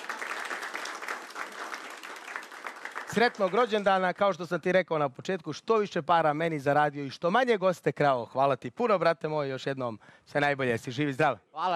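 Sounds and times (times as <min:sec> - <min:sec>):
applause for a waiter's birthday: 0:00.0 - 0:04.3
speech: 0:03.1 - 0:11.7.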